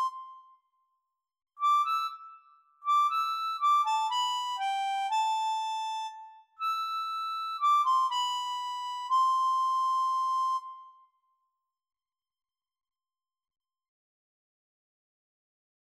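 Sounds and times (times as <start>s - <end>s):
harmonica: 0.0s - 0.4s, 1.6s - 10.9s.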